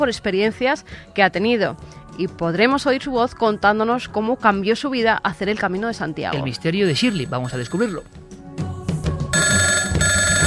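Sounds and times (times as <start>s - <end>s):
speech: 0.0s - 8.3s
telephone ringing with an electronic trill: 6.9s - 8.1s, 9.4s - 10.4s.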